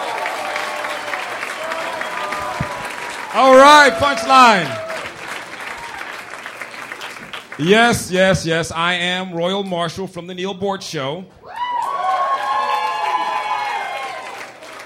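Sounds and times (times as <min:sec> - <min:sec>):
crowd applauding a comedian: 0:00.0 - 0:08.4, 0:11.5 - 0:14.8
man speaking loudly: 0:03.3 - 0:04.8, 0:07.6 - 0:11.3
speech: 0:03.4 - 0:04.8, 0:07.6 - 0:11.4.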